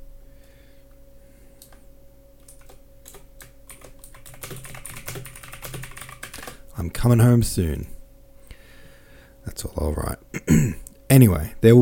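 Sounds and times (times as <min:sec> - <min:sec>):
faint steady hum: 0:00.0 - 0:11.8
typing on a computer keyboard: 0:02.4 - 0:06.6
speech: 0:06.8 - 0:08.0, 0:09.7 - 0:11.8.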